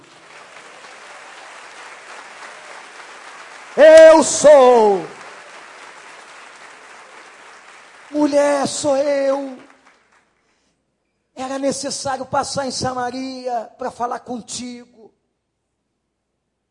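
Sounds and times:
audience clapping: 0.0s - 10.7s
speech: 3.8s - 5.2s, 8.3s - 9.7s, 11.4s - 15.2s.

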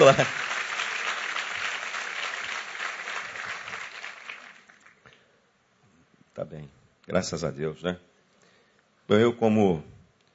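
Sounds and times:
speech: 0.0s - 0.5s, 6.5s - 8.1s, 9.1s - 9.9s
audience applauding: 0.0s - 5.2s.

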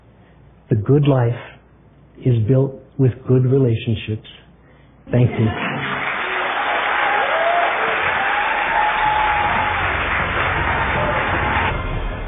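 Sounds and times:
speech: 0.7s - 1.5s, 2.2s - 4.4s, 5.1s - 5.7s
crowd applause: 5.4s - 12.2s.

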